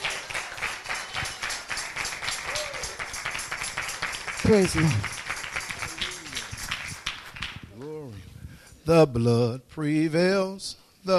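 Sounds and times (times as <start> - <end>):
audience clapping: 0.0 - 7.9
speech: 4.5 - 5.2, 7.8 - 11.1.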